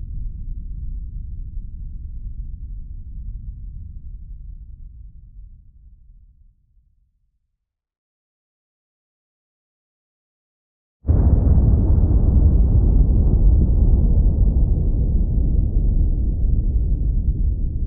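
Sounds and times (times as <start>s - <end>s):
nuclear bomb atomic explosion: 11.1s - 17.7s.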